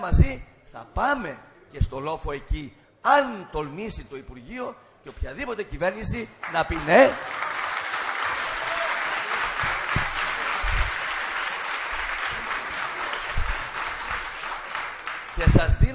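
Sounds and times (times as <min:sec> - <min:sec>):
speech: 0:00.0 - 0:07.6
crowd applause: 0:06.4 - 0:15.6.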